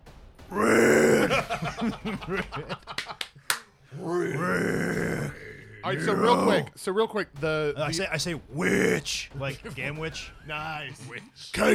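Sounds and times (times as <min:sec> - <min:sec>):
speech: 0:00.5 - 0:00.8, 0:01.6 - 0:03.0, 0:04.0 - 0:11.7
choppy throaty grunts: 0:00.5 - 0:01.4, 0:03.9 - 0:06.7
man voicing a low rough growl: 0:00.5 - 0:01.5, 0:03.9 - 0:06.7
laughter: 0:01.0 - 0:03.5.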